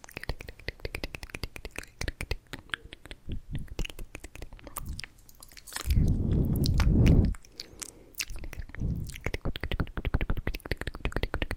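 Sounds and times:
intense wet mouth clicks, pops and smacks: 0.0s - 11.5s.

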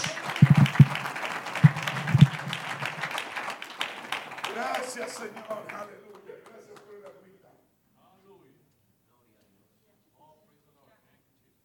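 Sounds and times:
audience applause: 0.0s - 7.0s
speech: 5.0s - 6.5s.

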